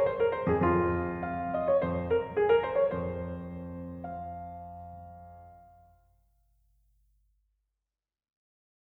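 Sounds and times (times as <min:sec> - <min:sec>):
piano piece: 0:00.0 - 0:06.1.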